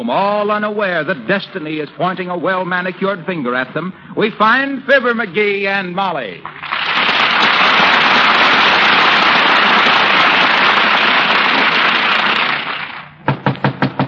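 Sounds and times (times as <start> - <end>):
speech: 0.0 - 6.8
applause: 6.4 - 13.2
sharp knocks on a door: 13.2 - 14.0.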